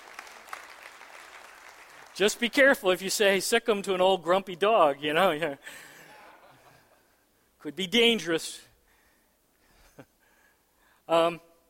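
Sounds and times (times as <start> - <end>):
audience clapping: 0.0 - 2.7
speech: 2.2 - 5.9, 7.6 - 8.7, 11.1 - 11.5.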